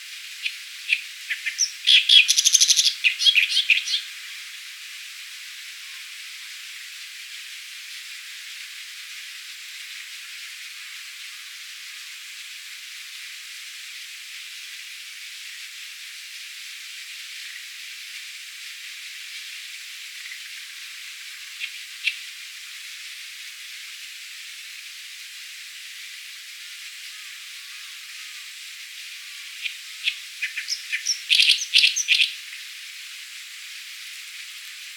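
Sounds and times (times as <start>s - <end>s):
Acrocephalus orientalis singing: 0.4s - 4.0s, 29.6s - 32.4s.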